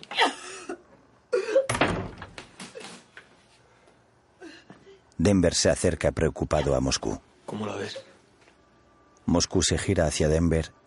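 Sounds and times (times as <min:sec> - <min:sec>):
bathroom door closing: 0:01.7 - 0:02.6
speech: 0:05.2 - 0:08.1, 0:09.3 - 0:10.8.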